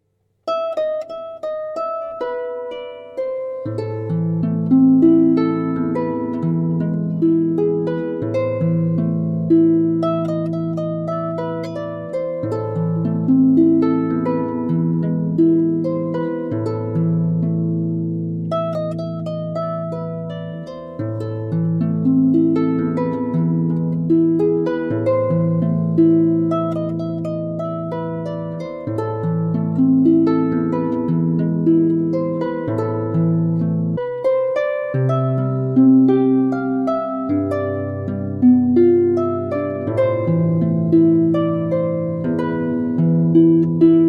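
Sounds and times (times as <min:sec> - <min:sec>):
harp: 0:00.0 - 0:44.0.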